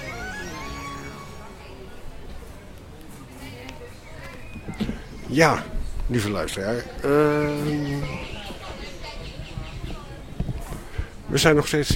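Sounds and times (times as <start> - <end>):
steady busy murmur: 0.0 - 11.9
scattered softer bird calls and chirps at Parknest: 3.9 - 5.5, 7.6 - 10.5
speech: 4.7 - 8.3, 11.3 - 11.9.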